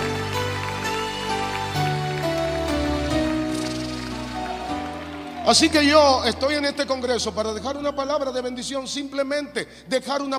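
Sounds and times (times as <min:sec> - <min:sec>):
audience applause: 0:00.0 - 0:07.9
speech: 0:05.5 - 0:10.3.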